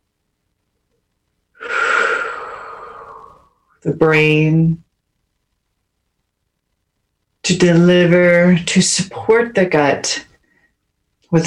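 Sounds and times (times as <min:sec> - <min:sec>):
deep breath drawn in: 0:01.6 - 0:03.6
speech: 0:03.8 - 0:04.8, 0:07.5 - 0:10.3.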